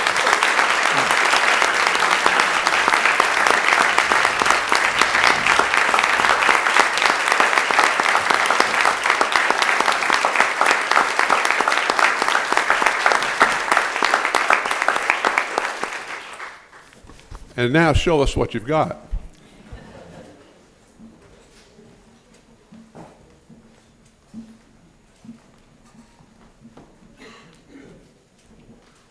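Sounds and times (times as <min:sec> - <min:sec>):
standing ovation applause: 0:00.0 - 0:17.0
speech: 0:17.6 - 0:19.1
laughter: 0:19.5 - 0:20.6.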